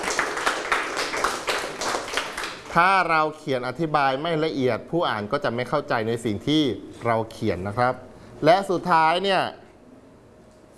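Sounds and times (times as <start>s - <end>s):
students in a classroom applauding a classmate: 0.0s - 2.8s
speech: 2.8s - 9.6s.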